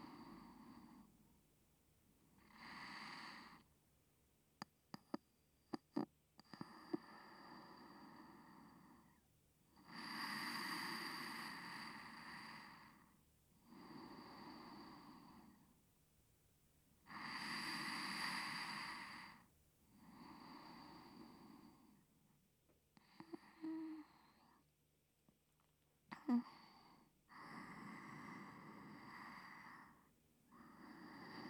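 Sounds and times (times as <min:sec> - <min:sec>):
person breathing in sleep on left side: 0:00.0 - 0:01.1, 0:02.4 - 0:03.7, 0:06.6 - 0:09.2, 0:09.8 - 0:15.7, 0:17.1 - 0:22.0, 0:23.0 - 0:24.6, 0:26.2 - 0:31.4.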